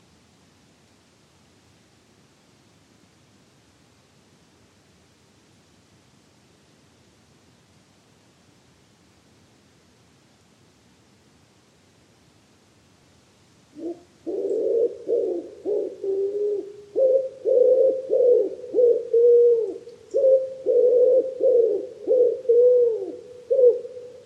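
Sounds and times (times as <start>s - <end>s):
common wood pigeon cooing: 13.8s - 24.2s.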